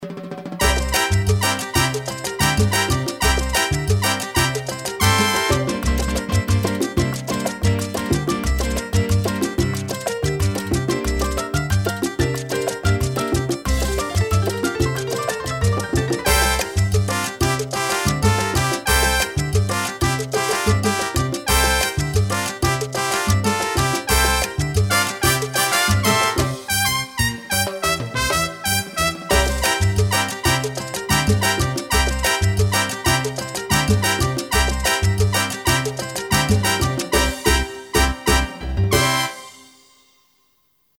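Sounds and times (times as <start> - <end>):
mambo music: 0.0 - 40.1.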